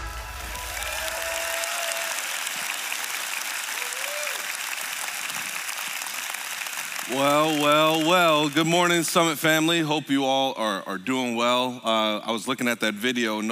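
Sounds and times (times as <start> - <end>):
church congregation applauding to welcome a pastor: 0.0 - 9.6
speech: 7.1 - 13.5.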